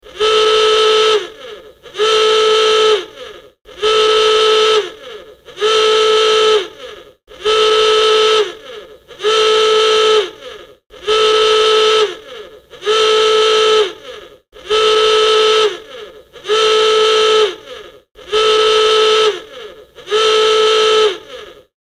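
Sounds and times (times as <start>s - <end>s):
klaxon: 0.0s - 21.7s.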